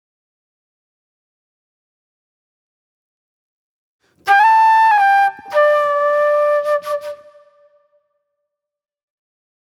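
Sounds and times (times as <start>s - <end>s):
acid jazz flute: 4.3s - 7.3s.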